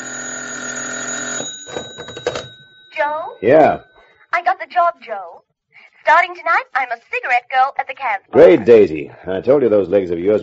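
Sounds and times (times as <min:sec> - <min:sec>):
telephone ringing: 0:00.0 - 0:04.9
speech: 0:03.1 - 0:05.4, 0:06.0 - 0:10.4.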